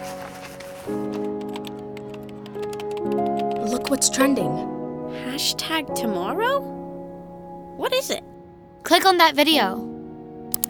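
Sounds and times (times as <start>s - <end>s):
speech: 0.8s - 1.3s, 3.9s - 6.8s, 7.8s - 8.3s, 8.9s - 9.9s
typing on a computer keyboard: 1.0s - 4.1s.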